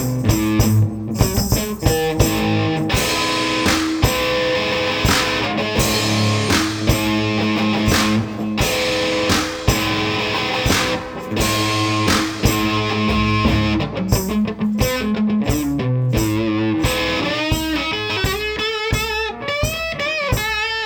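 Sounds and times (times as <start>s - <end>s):
drums: 0.0s - 20.8s
lead guitar: 0.0s - 20.8s.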